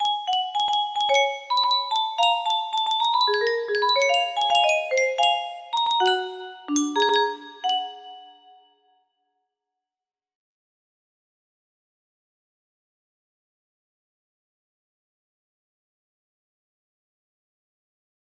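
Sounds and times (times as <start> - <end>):
music box melody: 0.0 - 8.7.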